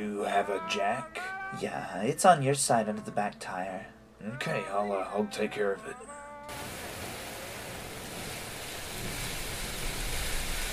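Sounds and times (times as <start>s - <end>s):
speech: 0.0s - 6.6s
heavy rain: 6.5s - 10.7s.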